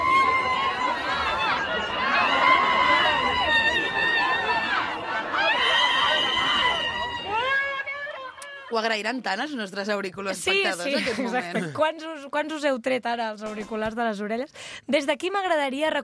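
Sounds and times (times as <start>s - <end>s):
crowd murmur: 0.0s - 8.6s
woman screaming in a city square: 0.0s - 8.8s
speech: 8.8s - 16.0s.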